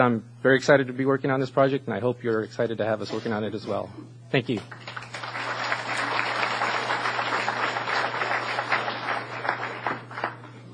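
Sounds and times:
speech: 0.0s - 4.8s
audience applause: 4.8s - 10.5s.

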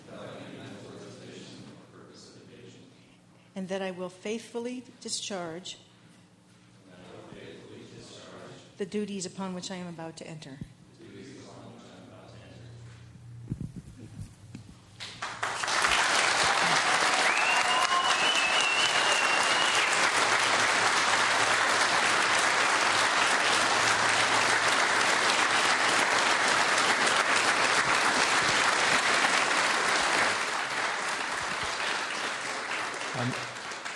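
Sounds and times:
speech: 3.6s - 5.9s, 8.8s - 10.7s
audience applause: 15.0s - 33.9s.

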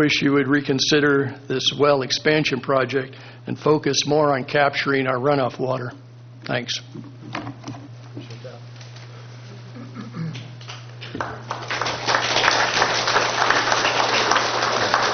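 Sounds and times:
speech: 0.0s - 7.8s
low electrical hum: 0.0s - 15.1s
audience applause after a public comment: 10.6s - 15.1s.

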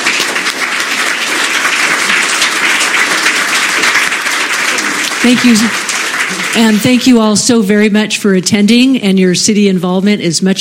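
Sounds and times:
audience applause: 0.0s - 7.3s
speech: 5.2s - 10.5s.

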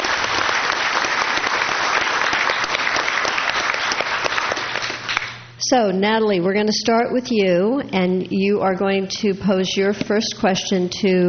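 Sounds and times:
audience applause: 0.0s - 5.4s
speech: 5.7s - 11.2s.

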